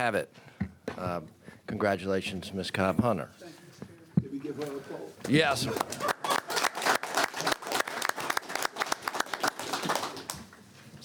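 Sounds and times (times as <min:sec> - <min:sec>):
speech: 0:00.0 - 0:03.6, 0:04.5 - 0:06.1
room full of people applauding: 0:05.5 - 0:10.6.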